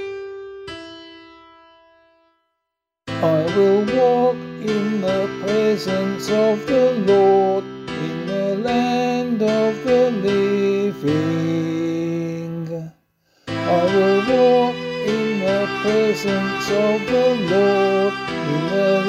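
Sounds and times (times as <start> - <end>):
vocal psalm singing: 3.2 - 12.9, 13.5 - 19.0.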